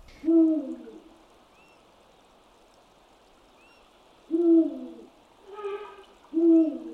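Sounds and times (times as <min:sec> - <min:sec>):
soft steady hiss: 0:00.0 - 0:06.9
eagle owl territorial hooting call: 0:04.3 - 0:06.9.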